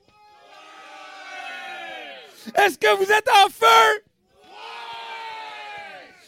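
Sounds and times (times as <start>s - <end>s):
audience shouting and cheering: 0.0s - 6.2s
speech: 2.4s - 4.1s.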